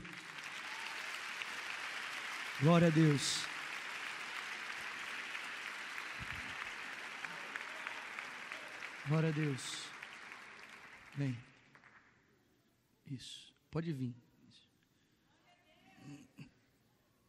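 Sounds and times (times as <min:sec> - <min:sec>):
audience applauding: 0:00.0 - 0:12.1
speech: 0:02.6 - 0:03.5, 0:09.1 - 0:09.9, 0:11.2 - 0:11.5, 0:13.1 - 0:14.6.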